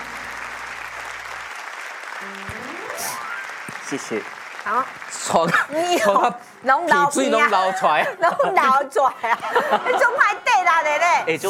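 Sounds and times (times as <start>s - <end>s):
crowd applauding: 0.0s - 6.2s
speech: 2.2s - 2.5s, 3.9s - 11.4s
brief rising tone: 2.2s - 3.9s.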